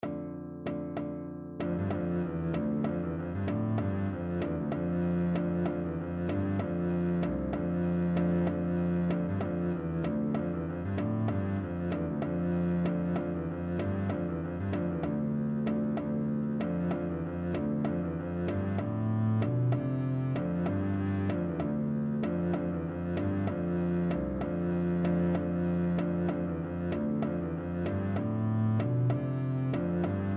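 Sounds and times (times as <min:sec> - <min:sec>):
string bass playing an estampie: 0:00.0 - 0:30.3.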